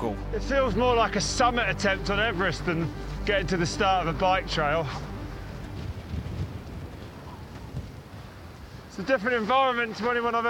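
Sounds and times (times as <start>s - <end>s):
speech: 0.2s - 5.1s, 9.0s - 10.4s
strong cold wind at high altitude near a volcanic crater: 5.3s - 9.0s.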